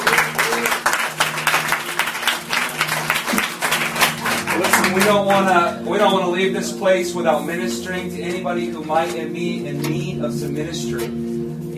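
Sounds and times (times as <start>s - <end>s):
audience hand clapping: 0.0s - 6.1s
speech: 4.6s - 11.7s.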